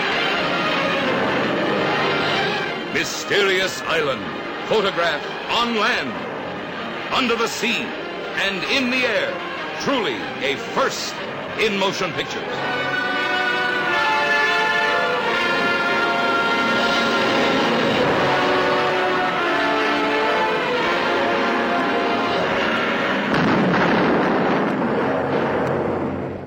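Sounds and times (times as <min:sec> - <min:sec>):
dramatic movie trailer music with brassy orchestral chords: 0:00.0 - 0:26.4
speech: 0:03.0 - 0:06.3, 0:07.1 - 0:12.8
movie trailer explosion effects: 0:23.2 - 0:26.4.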